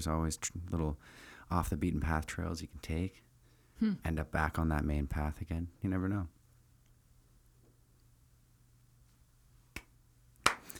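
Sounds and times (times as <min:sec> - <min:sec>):
speech: 0:00.0 - 0:06.4
slow sharp claps: 0:09.7 - 0:10.7.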